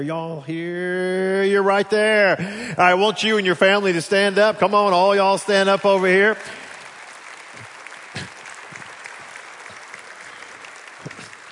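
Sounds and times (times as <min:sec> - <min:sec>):
speech: 0:00.0 - 0:06.6
audience clapping: 0:03.3 - 0:11.5.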